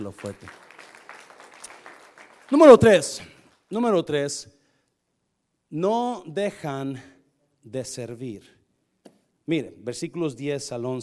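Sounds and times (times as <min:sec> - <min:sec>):
speech: 0:00.0 - 0:00.6, 0:02.5 - 0:04.6, 0:05.7 - 0:08.6, 0:09.5 - 0:11.0
crowd applauding: 0:00.0 - 0:03.3.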